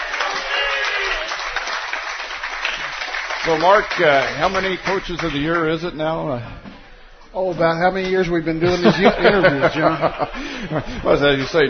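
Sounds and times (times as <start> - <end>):
round of applause: 0.0 - 5.8
speech: 3.4 - 6.7, 7.3 - 11.6
laughter: 8.6 - 11.6.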